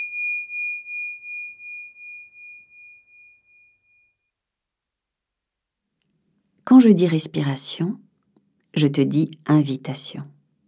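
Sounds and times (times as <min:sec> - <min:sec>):
tingsha cymbals chiming: 0:00.0 - 0:04.0
speech: 0:06.7 - 0:08.1, 0:08.8 - 0:10.4.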